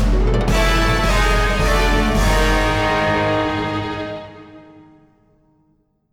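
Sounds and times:
game over music: 0.1 - 4.2.

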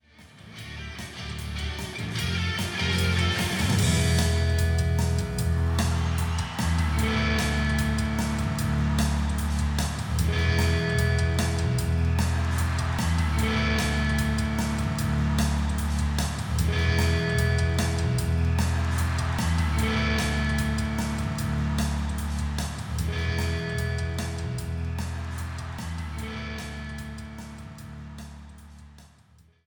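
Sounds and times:
baseball background music: 0.4 - 28.2.

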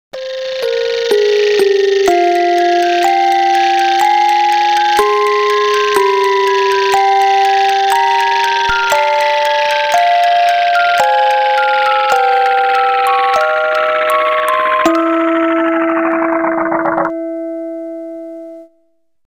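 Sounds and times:
music box: 0.2 - 18.7.

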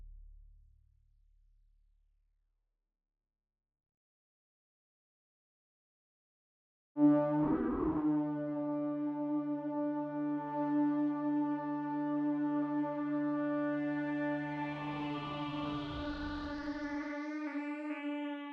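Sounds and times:
synths and pads: 7.0 - 18.5.

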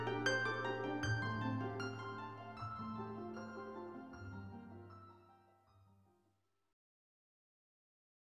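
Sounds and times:
harp melody: 0.0 - 5.6.

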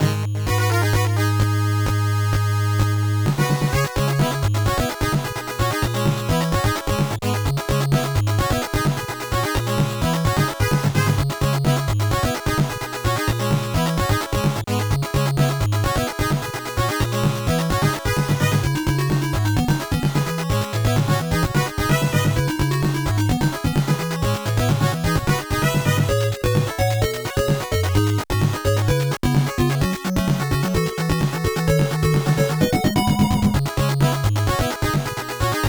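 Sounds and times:
stage background music: 0.0 - 35.6.

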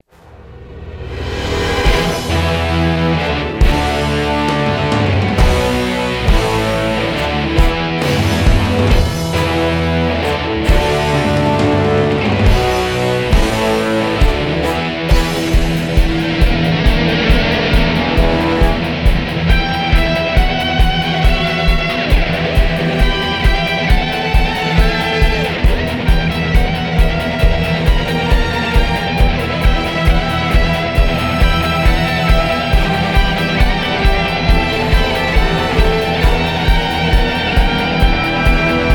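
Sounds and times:
reveal music loop: 1.8 - 38.9.

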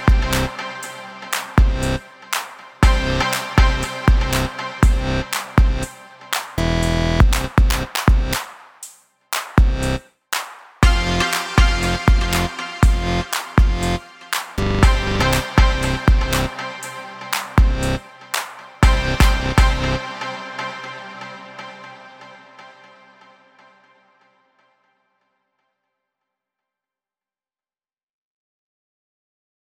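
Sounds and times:
music loop: 0.0 - 21.8.

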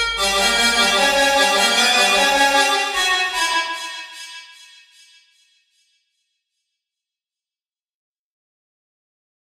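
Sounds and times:
remix music: 0.0 - 5.1.

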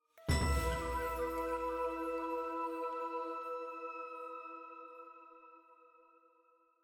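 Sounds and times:
flute in E: 0.0 - 6.4
jingle: 0.2 - 5.3.

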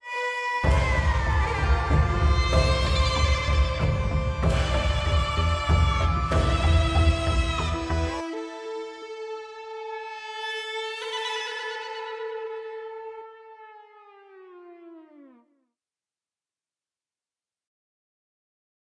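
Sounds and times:
music tutorial: 0.0 - 13.9.

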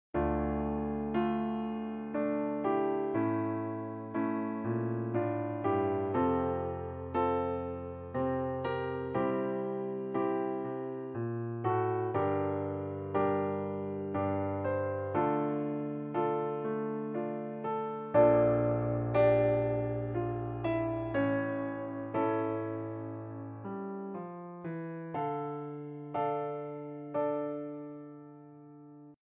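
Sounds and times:
sarabande on piano: 0.2 - 29.2.

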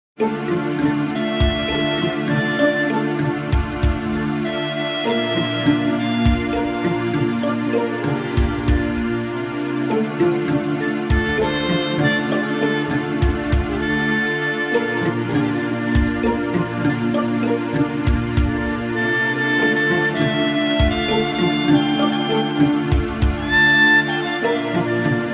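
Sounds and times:
instrumental music: 0.2 - 25.3.

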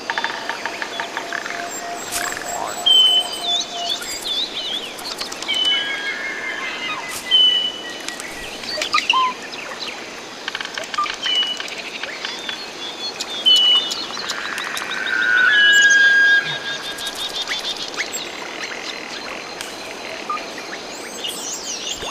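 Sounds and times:
Clearleaf Forest ambience: 0.0 - 22.0.

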